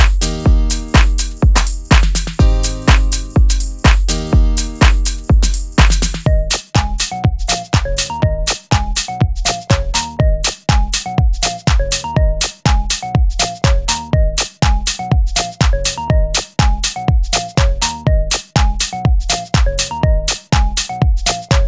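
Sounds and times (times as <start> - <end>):
deep house music: 0.0 - 21.6.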